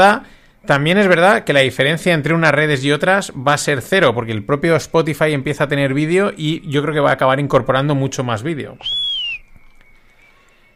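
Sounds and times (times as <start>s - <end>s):
speech: 0.0s - 9.1s
children blowing whistles in the street: 8.6s - 10.7s.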